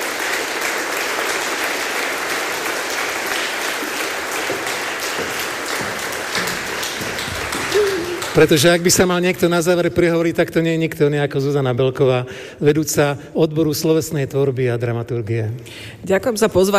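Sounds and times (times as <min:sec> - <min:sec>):
audience applause: 0:00.0 - 0:09.6
speech: 0:08.4 - 0:16.7.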